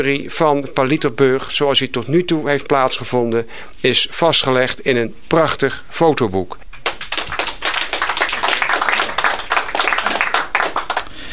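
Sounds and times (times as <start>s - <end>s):
speech: 0.0s - 6.6s
audience applauding: 6.8s - 11.3s.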